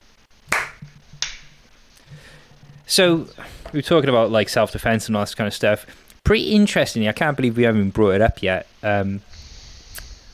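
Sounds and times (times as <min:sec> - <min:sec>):
faint low hum: 0:00.0 - 0:10.3
hand claps for recording sync: 0:00.5 - 0:01.5
speech: 0:02.2 - 0:09.3.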